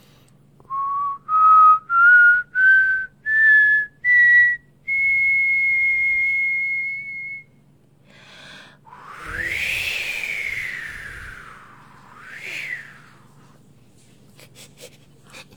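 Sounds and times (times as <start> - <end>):
person whistling to portray the north wind: 0.7 - 7.5, 9.1 - 13.1.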